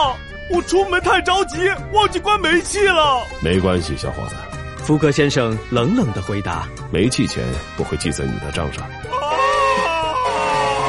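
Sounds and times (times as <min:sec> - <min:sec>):
speech: 0:00.0 - 0:09.2
despairing scream: 0:09.1 - 0:10.8.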